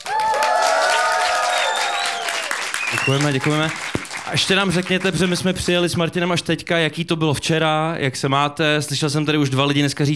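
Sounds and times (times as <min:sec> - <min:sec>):
high whoops and shouted voices: 0:00.0 - 0:02.6
crowd cheering and clapping at festival: 0:00.0 - 0:05.7
speech: 0:03.1 - 0:10.1.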